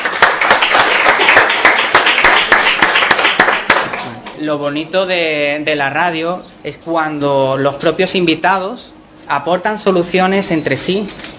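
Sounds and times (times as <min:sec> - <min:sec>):
audience applause: 0:00.0 - 0:04.2
speech: 0:04.4 - 0:11.3.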